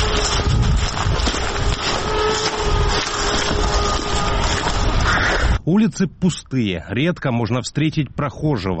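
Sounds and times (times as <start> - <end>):
drone buzzing overhead: 0.0 - 5.6
speech: 5.7 - 8.7.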